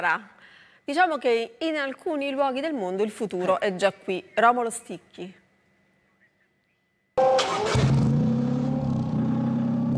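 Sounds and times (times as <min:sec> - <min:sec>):
speech: 0:00.0 - 0:05.4
exhaust of a car with a hydrogen-fuelled combustion engine: 0:07.2 - 0:09.9.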